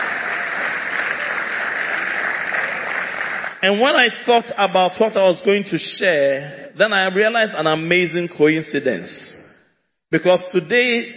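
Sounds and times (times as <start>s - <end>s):
audience applause: 0.0s - 3.6s
speech: 3.6s - 9.4s, 10.1s - 11.1s.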